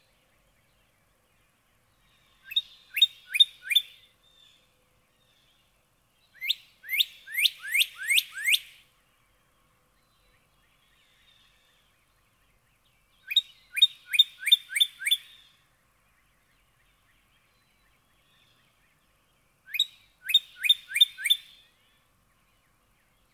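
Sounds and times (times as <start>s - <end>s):
northern cardinal whistled song: 2.5s - 4.0s, 6.4s - 8.8s, 13.3s - 15.4s, 19.7s - 21.6s.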